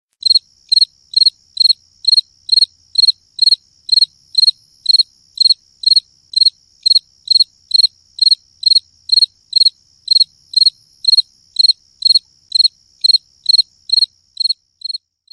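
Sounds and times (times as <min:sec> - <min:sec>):
cricket chirping: 0:00.2 - 0:15.3.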